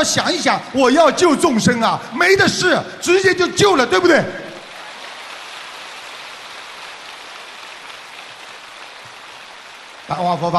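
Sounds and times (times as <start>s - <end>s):
speech: 0.0s - 4.4s, 10.1s - 10.5s
audience applause: 4.6s - 10.5s.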